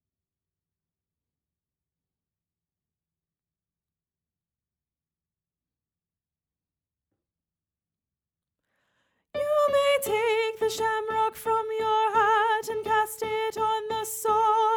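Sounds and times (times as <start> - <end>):
soprano singing a folk song: 9.4 - 14.7.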